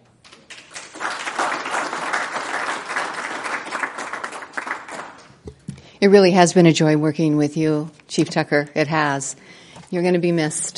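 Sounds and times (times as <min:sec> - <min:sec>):
applause: 0:00.2 - 0:05.5
speech: 0:06.0 - 0:10.7.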